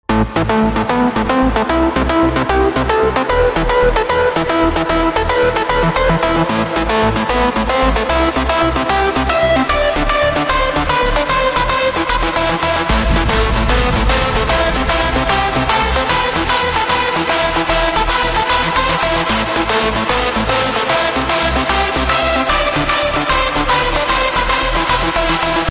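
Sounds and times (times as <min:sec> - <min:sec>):
hardstyle music: 0:00.1 - 0:25.6.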